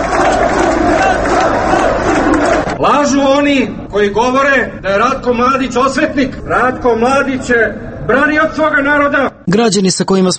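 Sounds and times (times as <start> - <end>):
crowd chanting at a rally: 0.0 - 2.8
speech: 2.8 - 10.3.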